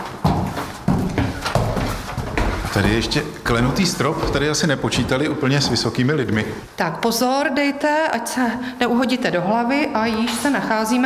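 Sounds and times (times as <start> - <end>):
heavy footsteps on old wooden stairs: 0.0 - 6.7
speech: 2.8 - 11.0.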